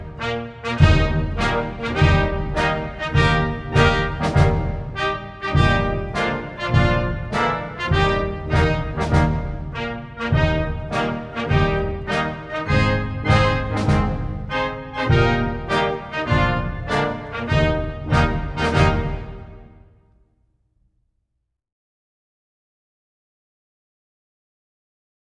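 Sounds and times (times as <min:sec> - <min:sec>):
national anthem music: 0:00.0 - 0:20.1.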